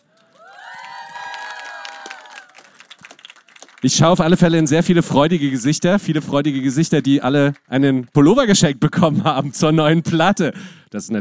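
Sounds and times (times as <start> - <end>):
audience applause: 0.0 - 8.6
speech: 3.8 - 11.1.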